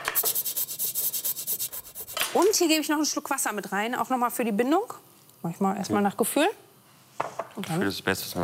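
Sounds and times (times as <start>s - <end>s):
nutmeg scraped across a grater: 0.2s - 2.2s
speech: 2.4s - 6.7s, 7.6s - 8.4s.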